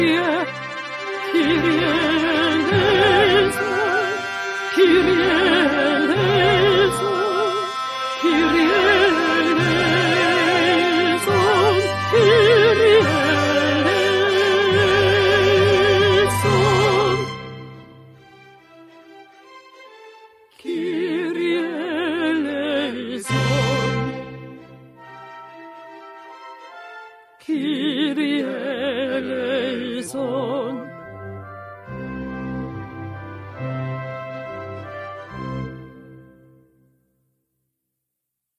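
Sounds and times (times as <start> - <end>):
altos singing: 0.0 - 17.6, 20.6 - 24.6, 27.4 - 31.2.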